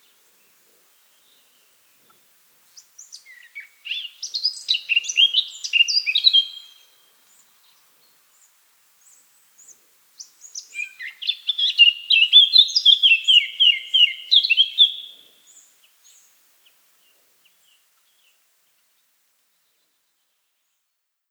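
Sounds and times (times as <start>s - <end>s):
Eurasian blackcap warbling song: 2.8s - 6.9s, 10.2s - 16.8s.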